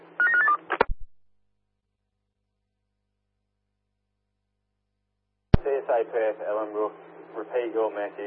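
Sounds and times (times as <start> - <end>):
telephone dialing tones: 0.2 - 0.7
speech: 6.0 - 8.2.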